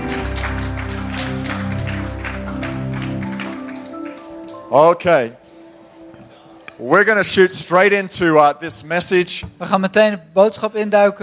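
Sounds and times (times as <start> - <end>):
audience applause for the band: 0.0 - 4.7
low sustained musical chord: 0.0 - 8.0
speech: 4.7 - 5.4, 6.8 - 11.2.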